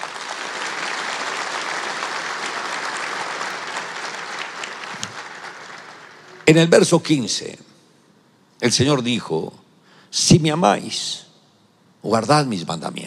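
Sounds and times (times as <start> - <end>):
audience applauding: 0.0 - 6.7
speech: 6.5 - 7.7, 8.6 - 11.2, 12.0 - 13.0.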